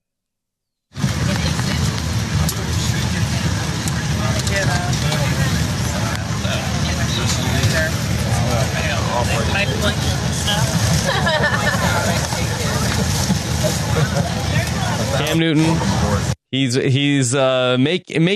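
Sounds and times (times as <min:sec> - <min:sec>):
airplane noise roar: 0:01.0 - 0:16.4
voices murmuring: 0:01.0 - 0:16.4
laughter: 0:10.8 - 0:16.3
speech: 0:15.4 - 0:18.3.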